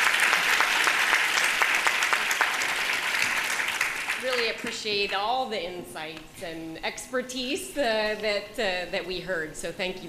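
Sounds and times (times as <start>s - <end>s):
crowd applause: 0.0s - 4.8s
speech: 4.6s - 10.0s.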